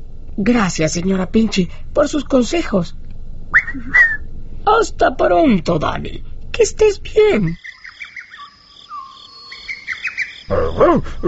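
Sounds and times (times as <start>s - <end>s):
speech: 0.4s - 3.0s, 3.7s - 7.6s, 10.5s - 11.2s
bird chirping: 7.4s - 11.2s.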